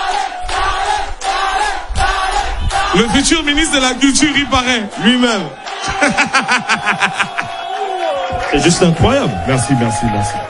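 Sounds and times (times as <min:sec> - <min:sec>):
audience at a festival in Gabon cheering and yelling: 0:00.0 - 0:10.4
speech: 0:03.0 - 0:07.5, 0:08.5 - 0:10.4
laughter: 0:05.6 - 0:09.1.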